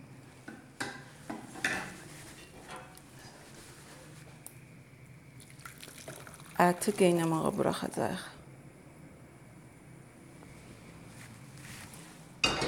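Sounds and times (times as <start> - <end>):
water splashing and dripping into a cooking pot of meat: 5.4 - 7.0
speech: 6.6 - 8.4
metal and pot stand clinking: 12.4 - 12.6.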